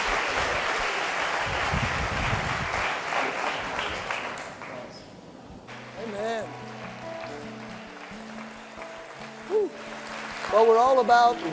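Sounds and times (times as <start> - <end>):
church congregation applauding: 0.0 - 4.9, 5.7 - 11.5
speech: 10.6 - 11.5.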